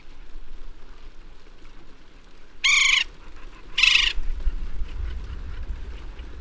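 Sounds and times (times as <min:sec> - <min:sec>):
West Indian woodpecker calls: 0:02.6 - 0:06.2.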